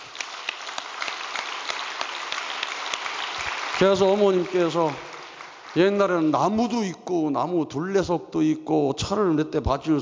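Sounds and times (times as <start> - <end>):
audience applause: 0.0 - 6.6
speech: 3.8 - 5.1, 5.8 - 10.0.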